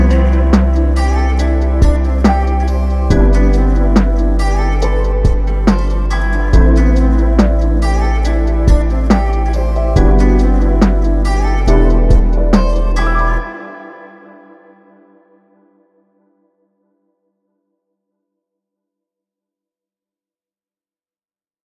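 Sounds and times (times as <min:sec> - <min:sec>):
lo-fi music: 0:00.0 - 0:15.0.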